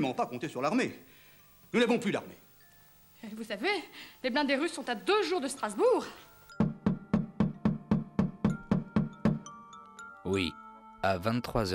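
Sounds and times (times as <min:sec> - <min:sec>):
speech: 0:00.0 - 0:02.4, 0:03.2 - 0:06.3, 0:10.3 - 0:11.7
knocking on a door: 0:06.6 - 0:09.5.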